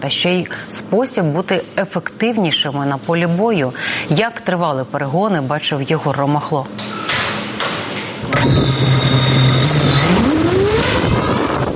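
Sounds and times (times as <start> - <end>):
speech: 0.0 - 7.0, 8.3 - 10.3
FPV drone electric motors taking off: 8.2 - 11.7.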